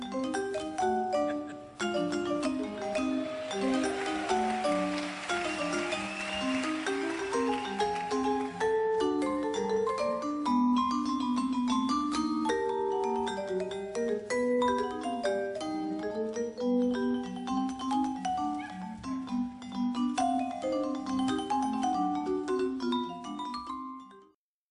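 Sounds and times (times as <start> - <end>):
vibraphone: 0.0 - 24.4.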